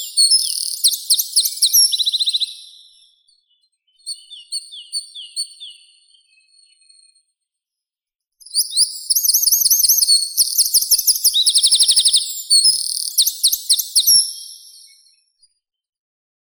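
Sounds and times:
wren Troglodytes troglodytes singing: 0:00.0 - 0:02.9, 0:08.5 - 0:15.0.

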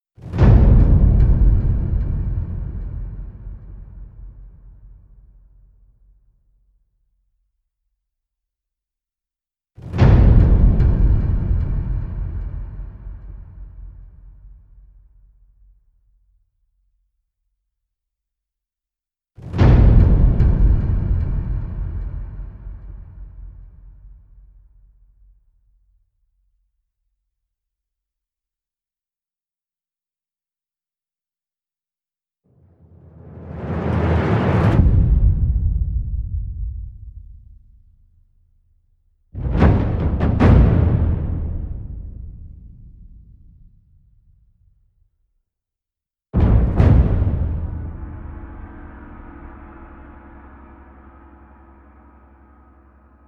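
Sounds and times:
percussion: 0:00.0 - 0:07.2, 0:09.8 - 0:17.0, 0:19.4 - 0:26.6, 0:32.6 - 0:44.9, 0:46.4 - 0:53.2.

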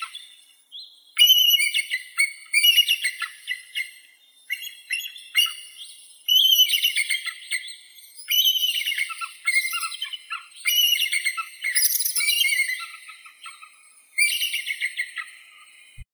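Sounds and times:
bald eagle Haliaeetus leucocephalus calling: 0:01.2 - 0:15.8.

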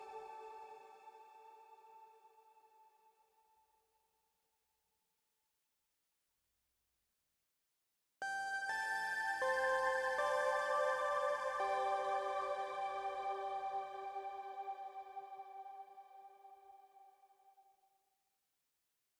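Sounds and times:
ambient music: 0:08.8 - 0:16.6.

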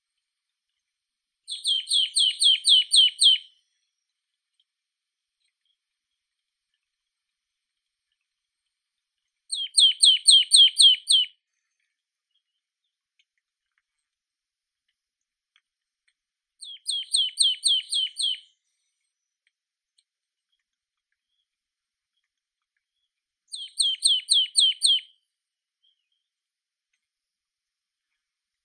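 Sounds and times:
Poecile palustris marsh tit calling: 0:01.5 - 0:03.4, 0:09.5 - 0:11.3, 0:16.6 - 0:18.4, 0:23.5 - 0:25.0.

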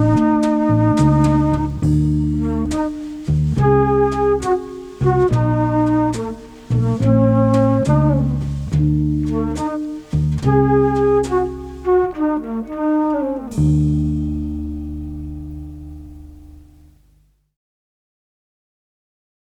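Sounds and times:
flute in the night: 0:00.0 - 0:14.2.

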